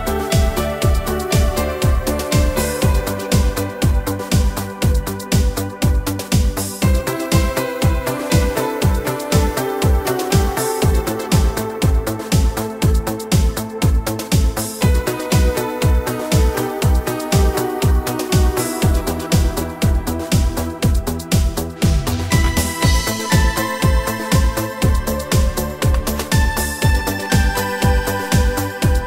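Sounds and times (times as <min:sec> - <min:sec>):
Italo style keyboard music on a Korg Pa4x: 0:00.0 - 0:29.0.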